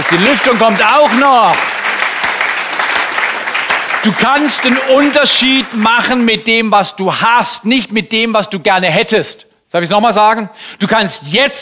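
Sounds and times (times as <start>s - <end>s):
audience applause: 0.0s - 6.6s
speech: 0.1s - 1.7s, 4.0s - 11.6s.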